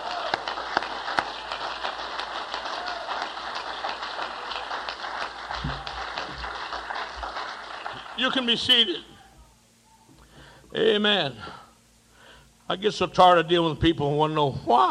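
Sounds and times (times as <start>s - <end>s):
audience clapping: 0.0s - 9.1s
speech: 8.2s - 9.1s, 10.8s - 11.6s, 12.7s - 14.9s.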